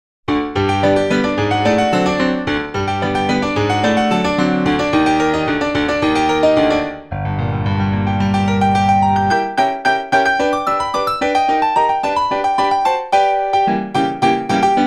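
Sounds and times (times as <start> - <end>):
early American ragtime piece: 0.3 - 14.8.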